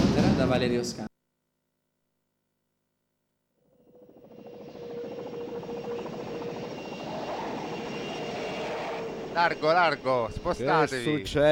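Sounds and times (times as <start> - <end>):
speech: 0.4 - 1.1, 9.4 - 11.5
faint whine: 3.6 - 11.5
airplane landing: 3.8 - 11.1.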